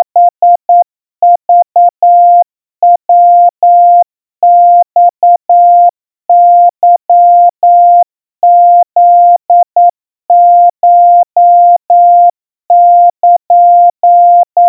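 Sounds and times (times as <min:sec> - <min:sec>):
Morse code tones at 700 Hz: 0:00.0 - 0:14.6.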